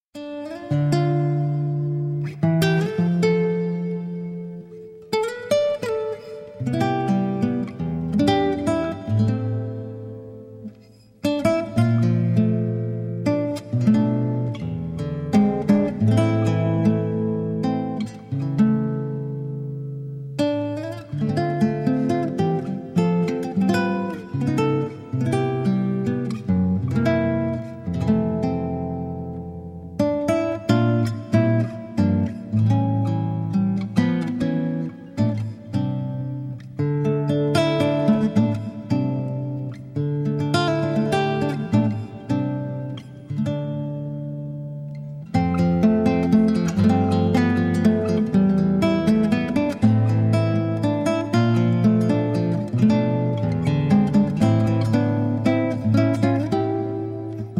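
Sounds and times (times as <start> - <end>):
instrumental music: 0.1 - 57.5.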